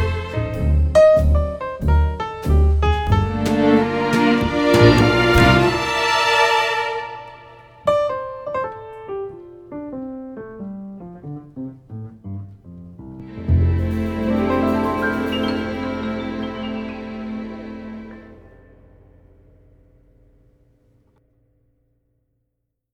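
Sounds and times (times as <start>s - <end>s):
old school jazz standards on piano: 0.0s - 6.2s, 7.8s - 19.1s.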